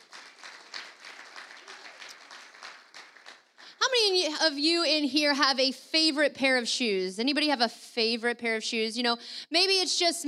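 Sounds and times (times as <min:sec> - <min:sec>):
audience applauding: 0:00.0 - 0:03.8
speech: 0:04.0 - 0:10.2.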